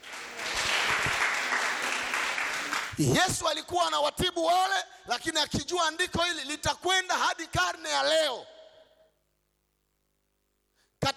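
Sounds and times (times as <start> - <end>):
church congregation clapping during a Swahili-language service: 0.0 - 3.3
speech: 3.0 - 8.5.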